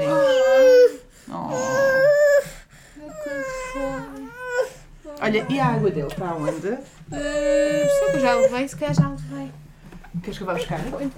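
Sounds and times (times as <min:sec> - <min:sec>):
sleepy baby whimpering: 0:00.0 - 0:08.8
speech: 0:05.3 - 0:09.3, 0:10.2 - 0:11.1.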